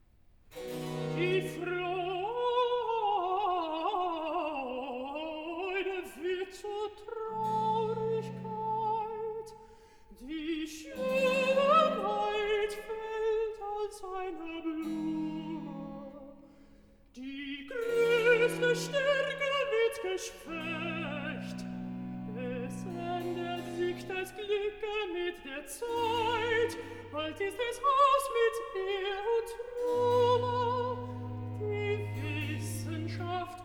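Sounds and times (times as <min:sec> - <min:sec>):
alto singing recitative: 0:00.8 - 0:09.5, 0:10.2 - 0:16.4, 0:17.2 - 0:33.6.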